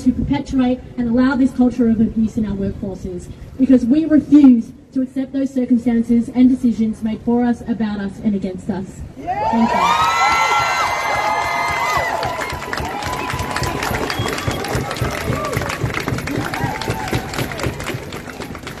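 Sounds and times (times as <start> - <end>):
speech: 0.5 - 10.1
crowd applause and cheering at rally: 9.4 - 18.7.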